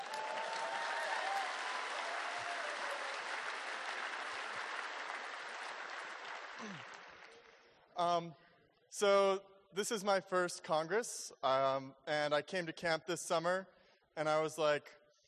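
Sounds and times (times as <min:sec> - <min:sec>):
audience applause: 0:00.0 - 0:07.6
speech: 0:06.6 - 0:07.0, 0:08.0 - 0:15.0.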